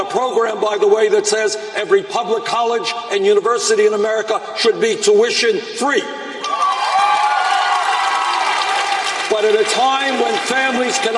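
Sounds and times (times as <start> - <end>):
speech: 0.0 - 6.2, 9.4 - 11.1
crowd cheering and clapping at Liberty University during a political speech: 6.4 - 11.1.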